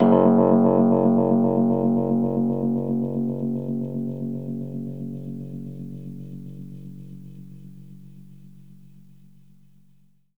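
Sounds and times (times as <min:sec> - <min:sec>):
Rhodes electric piano F sharp note: 0:00.0 - 0:05.7.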